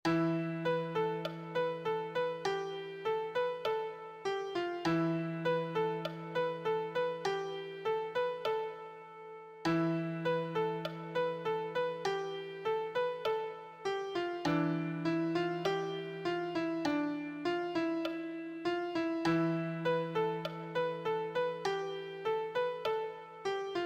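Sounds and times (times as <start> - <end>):
beginner piano solo: 0.1 - 9.0, 9.7 - 23.8.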